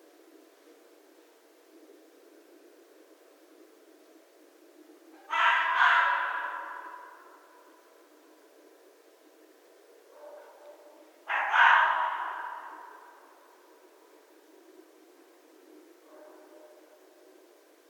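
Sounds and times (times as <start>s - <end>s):
North American red fox: 5.1s - 7.9s, 10.1s - 13.9s.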